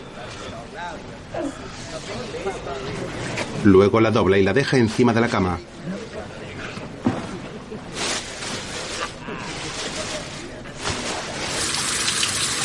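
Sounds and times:
speech: 0.3 - 6.0
shower water running: 11.5 - 12.6.

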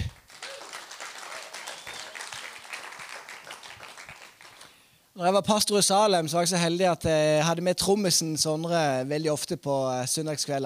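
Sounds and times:
audience applause: 0.0 - 4.8
speech: 5.2 - 10.6.

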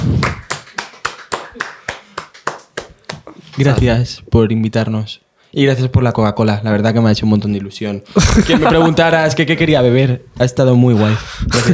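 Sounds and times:
people clapping hands: 0.0 - 3.3
speech: 3.6 - 11.7
laughter: 8.1 - 9.2, 11.5 - 11.7.

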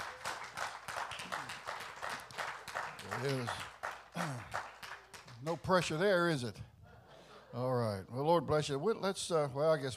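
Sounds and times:
audience clapping: 0.0 - 6.1
speech: 3.1 - 4.6, 5.4 - 6.7, 7.6 - 9.9.

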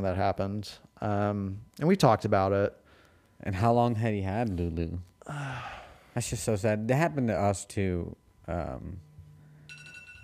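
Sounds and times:
speech: 0.0 - 2.8, 3.4 - 9.1
timer alarm: 6.2 - 10.2.

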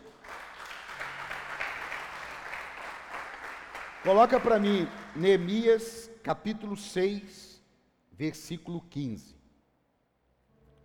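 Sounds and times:
applause: 0.0 - 6.0
speech: 4.0 - 7.5, 8.2 - 9.4.

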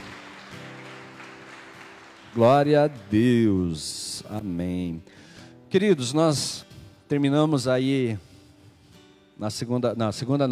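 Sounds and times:
audience applauding: 0.0 - 3.9
speech: 2.3 - 8.3, 9.4 - 10.5.

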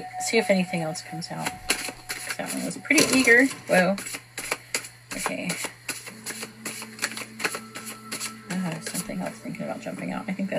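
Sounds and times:
speech: 0.0 - 1.9, 2.5 - 4.2, 5.2 - 5.7, 8.6 - 10.5
cards riffling and tapping during a card reading: 1.5 - 2.4, 3.0 - 9.1.

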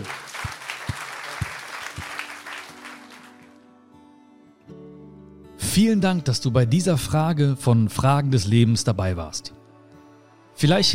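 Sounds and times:
audience applause: 0.0 - 3.6
speech: 5.8 - 9.6, 10.6 - 10.9.

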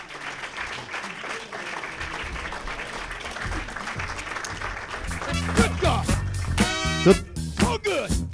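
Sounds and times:
audience applause: 0.0 - 6.8
thumping, tuneful music track: 3.6 - 8.3.

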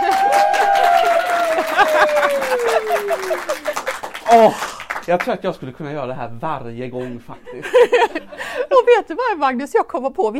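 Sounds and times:
laughter: 0.0 - 4.9, 7.0 - 8.8
audience applause: 0.0 - 5.4
speech: 4.3 - 10.3.

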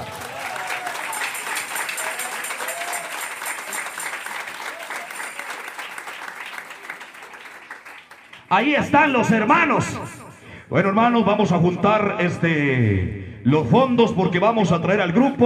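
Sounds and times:
audience applauding: 0.0 - 8.6
speech: 8.5 - 15.4.

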